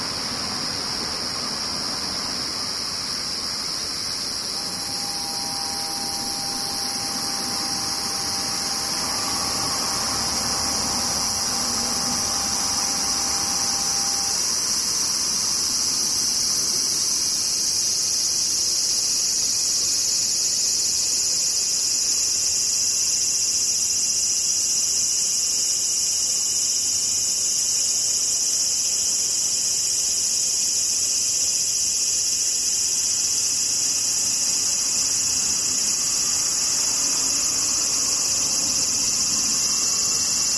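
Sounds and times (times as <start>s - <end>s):
cicadas buzzing: 0.0s - 40.5s
faint thin whistle-like tone: 4.4s - 14.9s.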